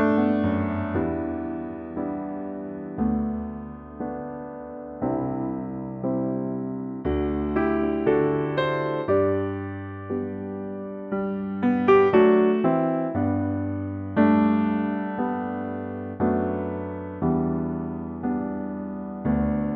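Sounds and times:
piano notes G to A: 0.0s - 19.7s.

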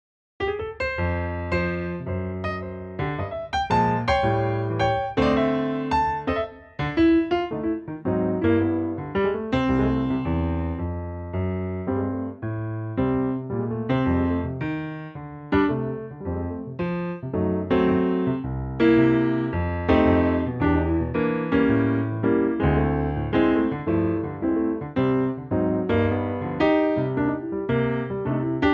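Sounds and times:
piano note C: 0.4s - 28.7s.

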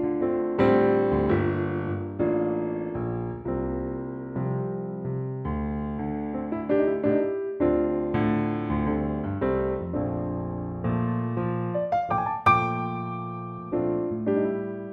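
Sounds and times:
swing piano track: 0.0s - 14.9s.

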